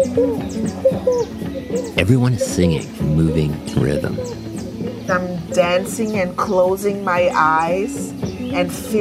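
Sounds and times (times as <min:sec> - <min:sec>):
speech: 0:00.2 - 0:04.4, 0:05.1 - 0:08.9
voice imitating a frog call: 0:02.0 - 0:04.4.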